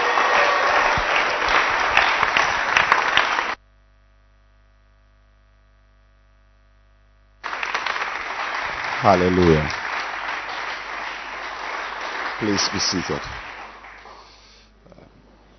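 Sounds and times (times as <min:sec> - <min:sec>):
audience clapping hands: 0:00.0 - 0:03.6, 0:07.4 - 0:14.7
speech: 0:09.0 - 0:09.8, 0:12.4 - 0:13.4.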